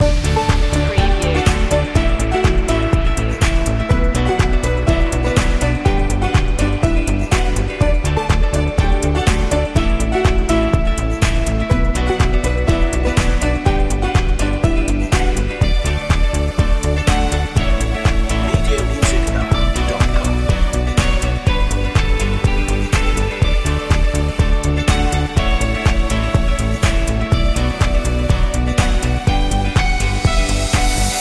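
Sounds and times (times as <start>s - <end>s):
corporate background music main loop: 0.0s - 31.1s.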